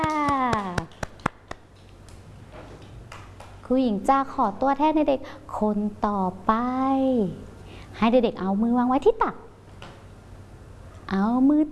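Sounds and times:
children clapping hands: 0:00.0 - 0:01.7
speech: 0:03.7 - 0:09.4, 0:11.1 - 0:11.7.

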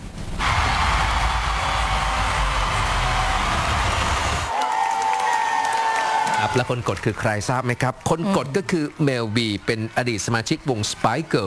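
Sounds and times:
audience applause in a hall: 0:00.4 - 0:11.4
speech: 0:06.5 - 0:11.4.

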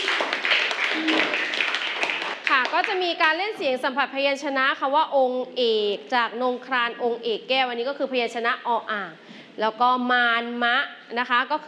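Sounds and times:
classroom clapping: 0:00.0 - 0:03.4
speech: 0:02.7 - 0:11.6.

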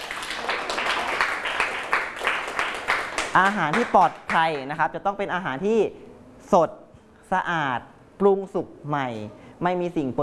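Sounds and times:
group of people clapping for a classmate: 0:00.0 - 0:04.8
speech: 0:03.4 - 0:10.2.

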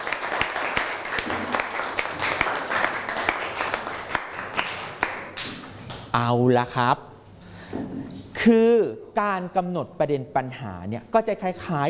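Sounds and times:
audience clapping: 0:00.0 - 0:06.1
speech: 0:06.2 - 0:07.1, 0:07.7 - 0:11.8.

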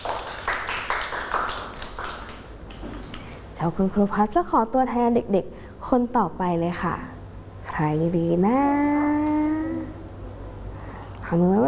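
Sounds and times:
children clapping: 0:00.0 - 0:03.3
speech: 0:03.6 - 0:07.1, 0:07.8 - 0:09.2, 0:11.3 - 0:11.6.

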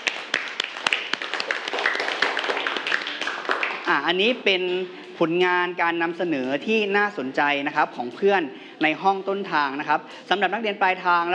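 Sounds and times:
classroom clapping: 0:00.0 - 0:04.2
speech: 0:03.9 - 0:11.3.

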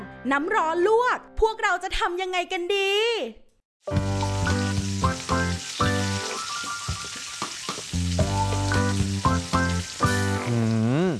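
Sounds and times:
speech: 0:00.3 - 0:04.2
food sizzling while frying during home cooking: 0:03.8 - 0:11.1.

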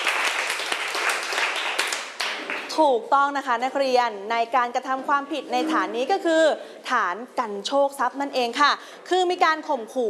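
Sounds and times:
classroom of students clapping for a classmate: 0:00.0 - 0:02.7
speech: 0:02.8 - 0:10.0.

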